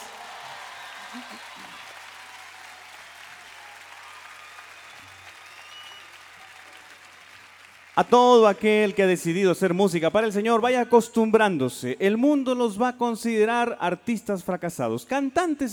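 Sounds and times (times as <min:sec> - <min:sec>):
audience applause: 0:00.0 - 0:09.2
speech: 0:01.1 - 0:02.0, 0:08.0 - 0:15.7.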